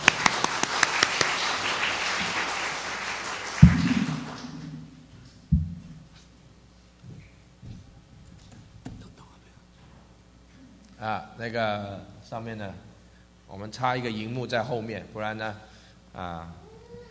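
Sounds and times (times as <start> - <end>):
crowd applauding warmly: 0.0 - 5.1
dull low thumps: 3.6 - 6.1
speech: 11.0 - 12.9, 13.5 - 16.6.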